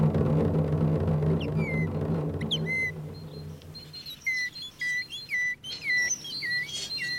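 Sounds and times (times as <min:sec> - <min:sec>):
low rumbling hum: 0:00.0 - 0:04.5
person whistling an imitation of a tit's call: 0:02.5 - 0:07.1.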